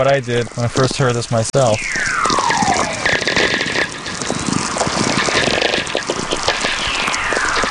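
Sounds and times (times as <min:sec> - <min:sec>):
speech: 0:00.0 - 0:02.1
dense radio static crackle: 0:00.0 - 0:07.6
steady faint hum: 0:01.5 - 0:07.6
VLF radio whistlers from lightning: 0:01.6 - 0:07.6.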